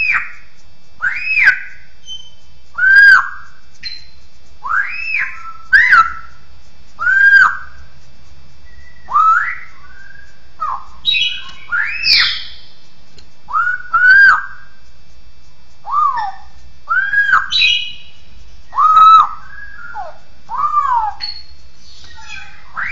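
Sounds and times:
bird song of whistled phrases: 1.0 - 6.4, 7.0 - 7.8, 8.6 - 12.8, 13.5 - 14.7, 15.8 - 22.8.

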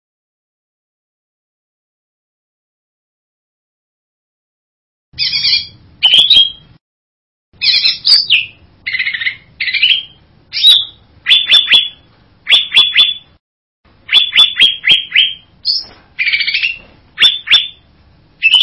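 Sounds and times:
bird buzzy whistled song: 5.2 - 6.8, 7.6 - 13.4, 14.0 - 18.6.

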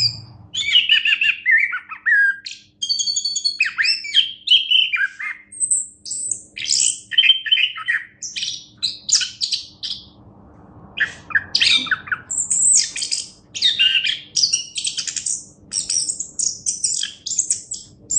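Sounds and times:
Orange-headed thrush singing rich whistled and buzzy song: 0.0 - 10.2, 11.0 - 18.1.

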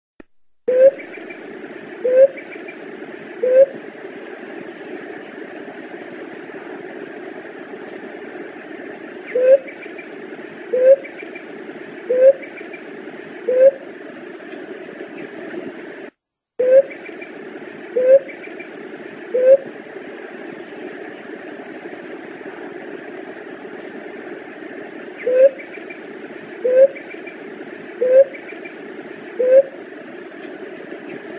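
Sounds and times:
Leptotila dove cooing: 0.7 - 1.2, 2.0 - 2.5, 3.4 - 3.8, 9.3 - 9.7, 10.7 - 11.1, 12.0 - 12.5, 13.4 - 13.8, 17.9 - 18.3, 19.3 - 19.7, 25.2 - 25.6, 26.6 - 27.0, 28.0 - 28.4, 29.3 - 29.8.

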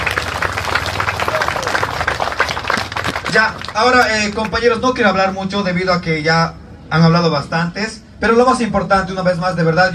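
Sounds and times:
crowd applause: 0.0 - 4.2
speech: 3.3 - 9.9.

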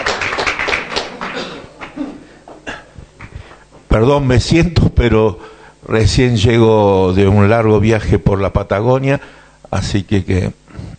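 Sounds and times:
audience applause: 0.0 - 2.3
speech: 4.0 - 10.6.

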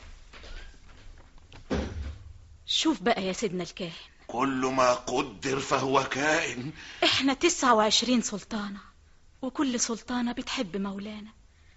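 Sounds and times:
shuffling: 0.0 - 1.7
door pulled shut: 1.6 - 2.6
speech: 2.8 - 11.4.

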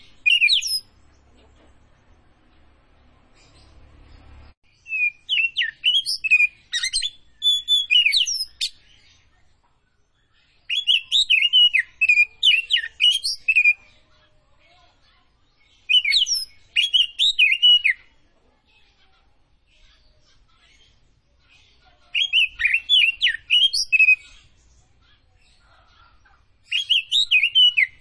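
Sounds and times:
Oriental magpie-robin of the Tretes form singing vigorously with whistled phrases: 0.0 - 0.9, 4.7 - 9.2, 10.6 - 14.0, 15.8 - 18.1, 22.1 - 24.5, 26.6 - 27.9.

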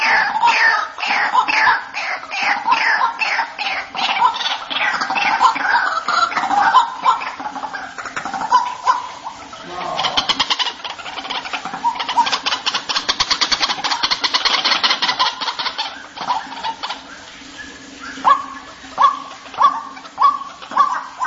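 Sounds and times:
white-breasted waterhen clipped rising notes and harsh croaking calls used as a lure: 0.0 - 21.2.

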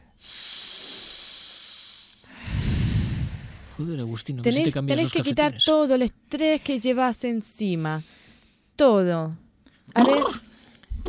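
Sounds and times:
deep breathing in and out: 0.0 - 3.8, 7.8 - 8.7
speech: 3.8 - 8.2, 8.8 - 10.5.

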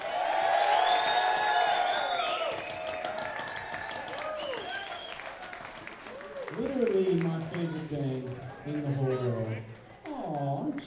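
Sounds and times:
crowd shouting and whooping: 0.0 - 6.8
crowd applauding: 0.0 - 10.8
speech: 6.6 - 10.8.

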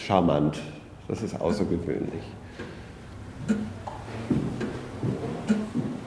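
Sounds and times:
speech: 0.0 - 2.4, 3.5 - 4.4
man-high clock of light-coloured wood ticking: 1.4 - 1.8, 3.4 - 6.0.

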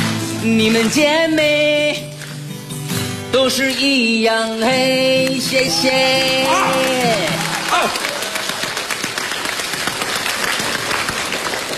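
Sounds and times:
speech: 0.4 - 2.1, 3.3 - 8.0
audience applause: 5.2 - 11.7.

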